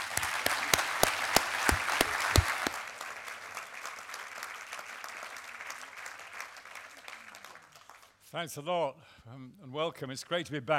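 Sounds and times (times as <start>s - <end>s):
audience clapping: 0.0s - 8.3s
speech: 8.3s - 10.7s.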